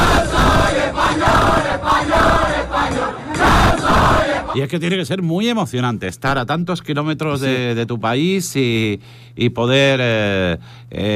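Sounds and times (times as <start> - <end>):
group of people chanting in unison: 0.0 - 4.6
speech: 4.6 - 11.1.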